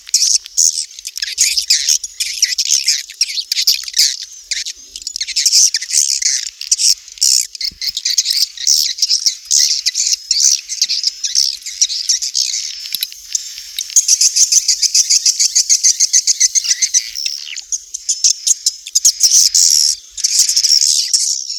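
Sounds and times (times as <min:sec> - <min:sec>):
swiftlets twittering: 0:00.0 - 0:21.3.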